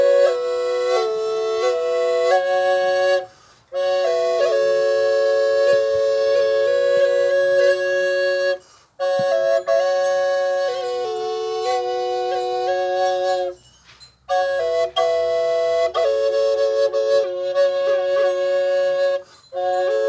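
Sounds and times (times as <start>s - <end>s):
native triple flute playing F: 0.0s - 13.6s, 14.3s - 20.0s.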